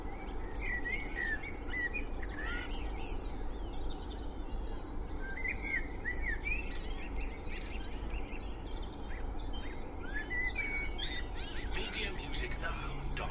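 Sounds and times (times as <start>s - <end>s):
spring dawn chorus birdsong in Cheshire UK: 0.0s - 13.2s
distant traffic noise in Cheshire UK: 11.6s - 13.2s.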